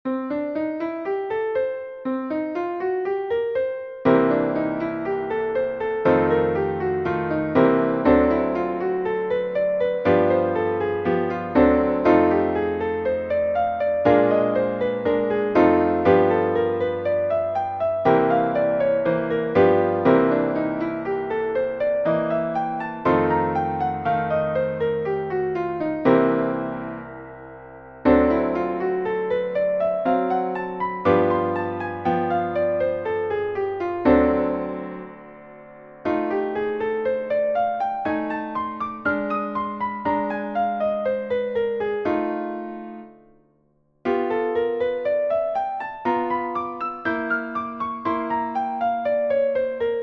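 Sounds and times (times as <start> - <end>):
piano blues scales warm-ups: 0.0 - 50.0.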